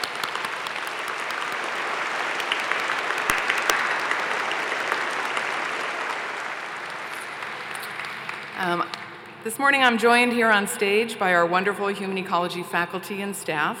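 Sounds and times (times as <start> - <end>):
audience applause: 0.0 - 9.2
speech: 8.6 - 13.7.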